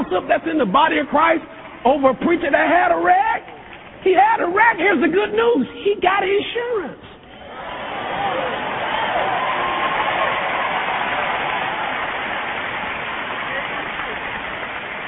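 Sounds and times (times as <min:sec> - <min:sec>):
speech: 0:00.0 - 0:07.1
audience clapping: 0:07.6 - 0:15.0.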